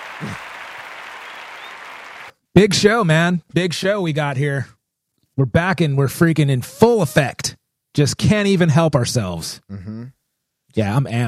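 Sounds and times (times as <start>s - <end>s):
crowd applause: 0.0s - 2.3s
speech: 0.2s - 0.5s, 2.6s - 4.8s, 5.4s - 11.2s.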